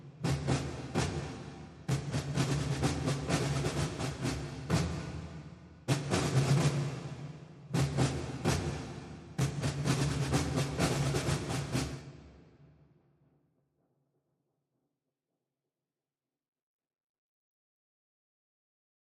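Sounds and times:
snare drum: 0:00.0 - 0:12.7.

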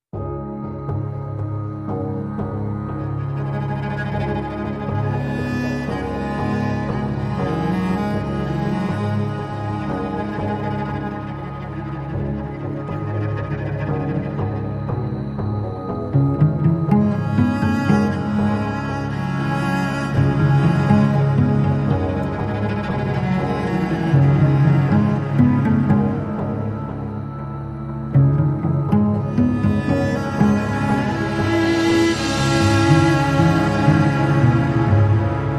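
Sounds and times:
cello: 0:00.2 - 0:35.5.

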